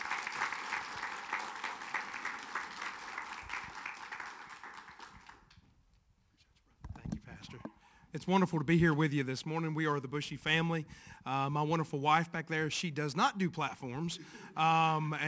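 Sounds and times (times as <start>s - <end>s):
audience applauding a welcome: 0.0s - 5.6s
speech: 8.1s - 15.2s.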